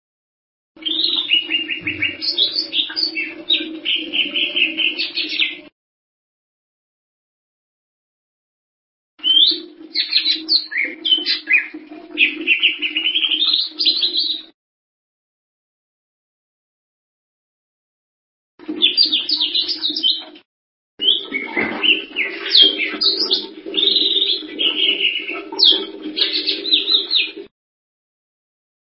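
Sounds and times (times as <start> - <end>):
bird song twittering: 0.8 - 5.7, 9.2 - 14.5, 18.8 - 20.3, 21.0 - 27.4.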